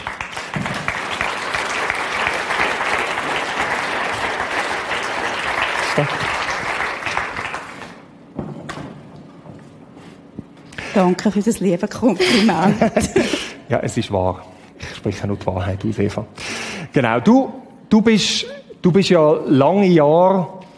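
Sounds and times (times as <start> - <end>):
audience applause: 0.0 - 8.0
speech: 6.0 - 6.3, 11.0 - 16.4, 17.0 - 20.6
laughter: 12.2 - 13.6.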